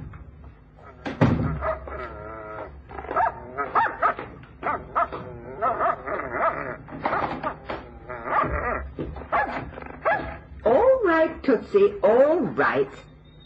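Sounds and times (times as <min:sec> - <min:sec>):
dog whining: 0:00.8 - 0:10.5
dog barking: 0:03.0 - 0:07.4, 0:08.3 - 0:08.6, 0:09.3 - 0:10.4
speech: 0:11.7 - 0:13.1.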